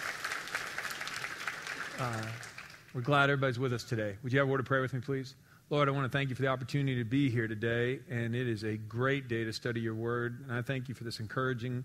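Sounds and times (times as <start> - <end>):
church congregation applauding: 0.0 - 3.1
speech: 2.0 - 11.8.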